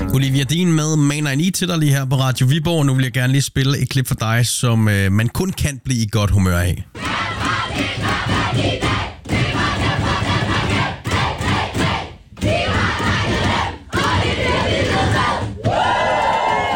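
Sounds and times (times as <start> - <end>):
speech: 0.2 - 7.2, 7.8 - 9.1
Danish women's national football team shouting and chanting in the locker room: 7.0 - 16.7.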